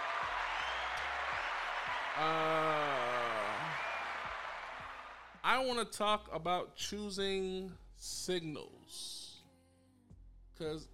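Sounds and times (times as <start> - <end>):
single voice letting out a long wavering cheer: 0.0 - 4.9
sharp hand claps: 0.0 - 5.4
speech: 2.2 - 2.8, 5.4 - 9.2, 10.6 - 10.9.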